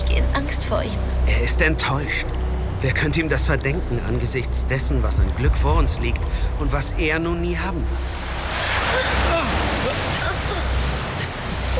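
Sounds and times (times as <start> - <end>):
speech: 0.7 - 8.2
rising flood water rushing: 6.3 - 11.7.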